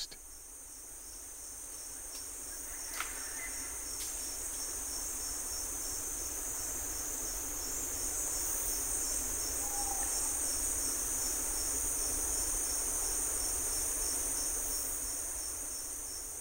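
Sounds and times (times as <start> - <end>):
slowed-down Panama forest insect drone: 0.0 - 16.4.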